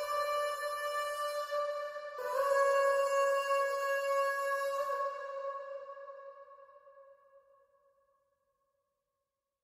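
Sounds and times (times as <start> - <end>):
nasheed vocals only: 0.0 - 7.6.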